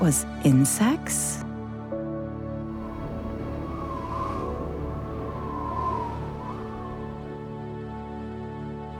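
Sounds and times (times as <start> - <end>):
speech: 0.0 - 1.4
wind blowing: 2.7 - 8.4.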